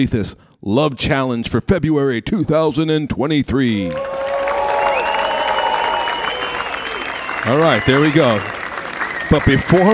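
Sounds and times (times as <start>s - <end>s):
speech: 0.0s - 4.3s, 7.4s - 8.6s, 9.3s - 9.9s
audience cheering and applause: 3.8s - 9.9s
raised voices: 3.8s - 9.9s.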